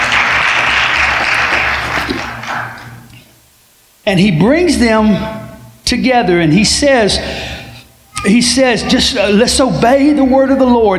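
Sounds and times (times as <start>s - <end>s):
audience clapping: 0.0s - 3.0s
speech: 4.0s - 7.6s, 8.2s - 10.9s.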